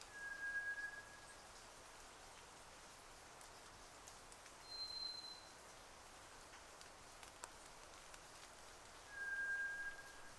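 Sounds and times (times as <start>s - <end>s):
White's thrush whistling: 0.1s - 1.2s, 9.1s - 10.3s.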